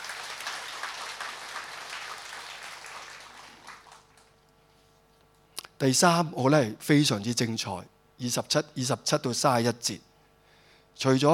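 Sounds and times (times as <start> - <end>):
audience applause: 0.0 - 4.3
speech: 5.8 - 10.1, 11.0 - 11.3.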